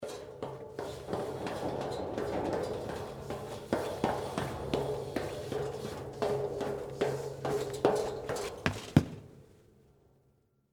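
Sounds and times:
fast footsteps descending metal spiral staircase in a lighthouse: 0:00.0 - 0:09.4.

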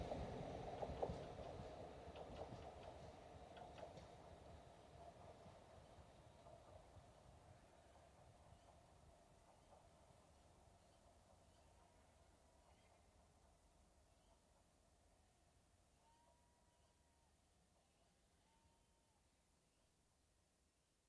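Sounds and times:
steam train passing at high speed: 0:00.0 - 0:15.2
train track noise: 0:00.0 - 0:17.0.

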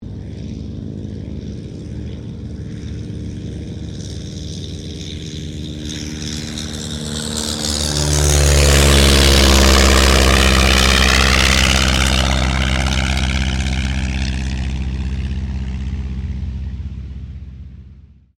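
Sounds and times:
de Havilland DH82A Tiger Moth taking off: 0:00.0 - 0:18.3.

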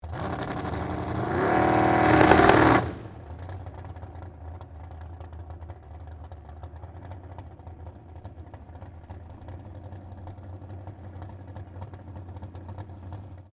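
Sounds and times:
dragster engine revving: 0:00.0 - 0:04.6
dragster engine idling: 0:01.9 - 0:13.5.

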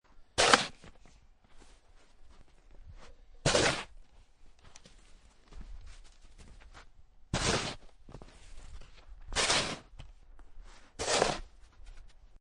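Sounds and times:
shoveling medium soft snow: 0:00.4 - 0:00.9, 0:03.4 - 0:03.9, 0:07.4 - 0:07.8, 0:09.3 - 0:09.9, 0:10.7 - 0:11.6.

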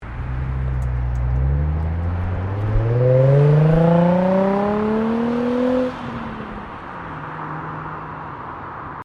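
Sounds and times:
Nissan 350Z manual sports car exhaust driving off: 0:00.1 - 0:06.0.

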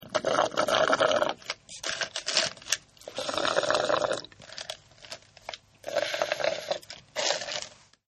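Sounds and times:
drinking through a straw: 0:00.0 - 0:02.1, 0:03.0 - 0:04.8, 0:05.8 - 0:07.7.

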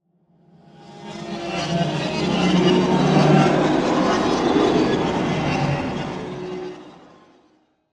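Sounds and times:
ghostly airy swirling reversed voices swell: 0:00.8 - 0:07.1.

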